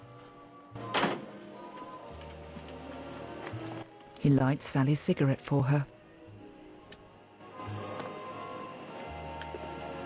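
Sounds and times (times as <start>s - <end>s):
yellow convertible car door shutting: 0.8s - 1.4s
speech: 4.2s - 6.0s.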